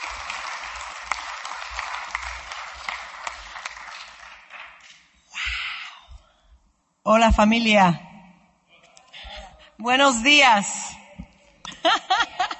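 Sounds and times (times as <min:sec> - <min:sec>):
crowd applauding: 0:00.0 - 0:05.1
speech: 0:07.1 - 0:08.1, 0:09.8 - 0:10.9
laughter: 0:11.7 - 0:12.5.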